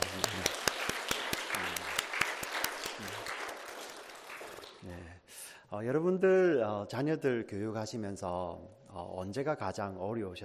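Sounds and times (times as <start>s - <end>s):
audience applause: 0.0s - 4.8s
speech: 5.8s - 10.4s.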